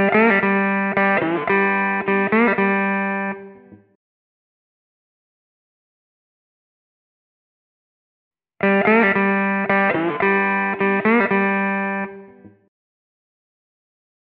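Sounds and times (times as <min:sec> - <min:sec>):
slide guitar in G at 110 BPM: 0:00.0 - 0:03.4, 0:08.6 - 0:12.2.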